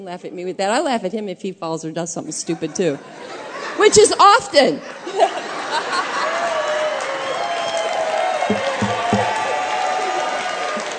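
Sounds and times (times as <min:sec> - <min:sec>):
speech: 0:00.0 - 0:06.1
laughter: 0:02.6 - 0:04.2, 0:04.8 - 0:06.8
audience clapping: 0:06.2 - 0:10.9.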